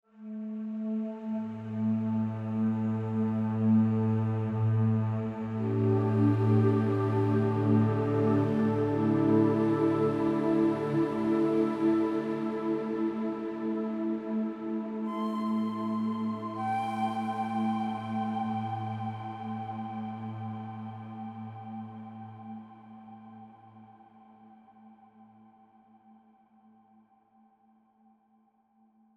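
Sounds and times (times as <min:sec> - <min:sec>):
bamboo flute: 0:00.2 - 0:23.5.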